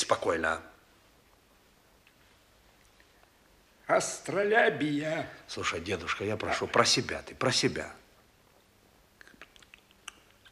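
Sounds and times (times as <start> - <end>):
speech: 0.0 - 0.7, 3.9 - 8.0
soft wet lip smacking: 8.6 - 10.5.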